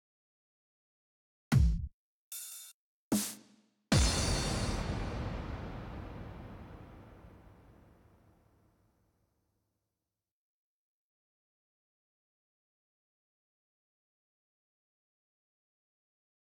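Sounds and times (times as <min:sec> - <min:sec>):
sampled rhythm one-shot: 0:01.5 - 0:06.3.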